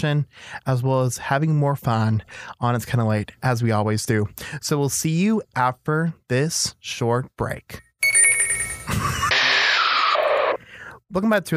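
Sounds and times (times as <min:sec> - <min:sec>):
speech: 0:00.0 - 0:07.9, 0:11.1 - 0:11.5
electronic telephone ringing for an incoming call to a late-night show: 0:08.0 - 0:09.6.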